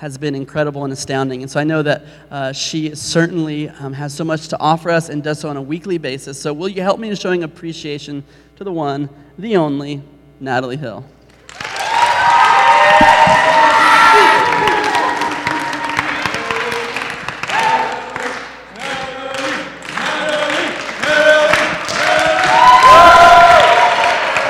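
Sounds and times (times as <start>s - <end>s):
speech: 0.0s - 11.2s
audience slow clap: 11.3s - 24.4s.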